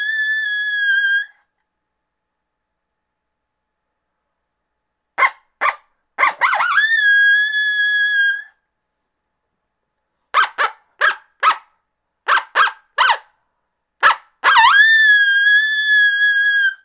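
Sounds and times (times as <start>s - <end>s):
coyote greeting howl: 0.0s - 1.3s, 5.2s - 8.5s, 12.3s - 13.2s, 14.0s - 16.8s.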